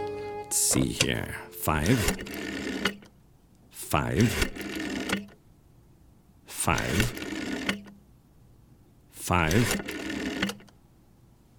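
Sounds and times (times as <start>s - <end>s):
speech: 0.5s - 3.0s, 3.8s - 4.7s, 6.6s - 7.3s, 9.3s - 10.0s
rotary phone being dialed: 1.7s - 3.1s, 3.8s - 5.4s, 6.6s - 8.0s, 9.3s - 10.8s.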